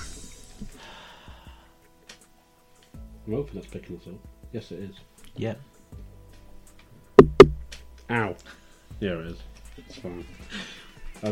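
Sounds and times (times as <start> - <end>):
person inhaling turned away from the microphone: 0.8 - 1.8
speech: 3.3 - 5.7, 8.1 - 11.3.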